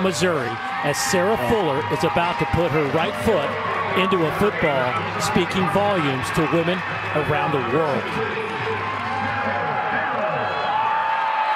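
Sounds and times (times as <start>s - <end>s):
speech: 0.0s - 8.6s
football stadium crowd cheering in Columbia Missouri: 0.0s - 11.5s.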